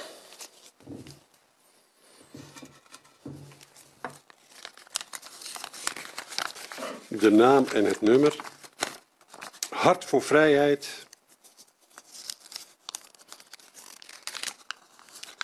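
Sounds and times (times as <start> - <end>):
papery shuffling rustles: 3.0 - 15.4
speech: 7.2 - 8.5, 9.8 - 11.1.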